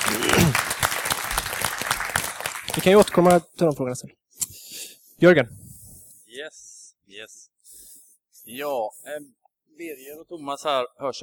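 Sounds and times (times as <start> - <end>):
audience applause: 0.0 - 3.5
speech: 2.8 - 4.2, 5.2 - 5.6, 6.3 - 7.5, 8.5 - 11.2.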